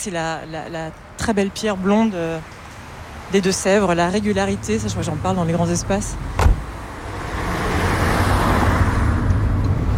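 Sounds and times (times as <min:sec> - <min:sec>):
speech: 0:00.0 - 0:02.6, 0:03.3 - 0:06.5
car driving: 0:02.5 - 0:09.9.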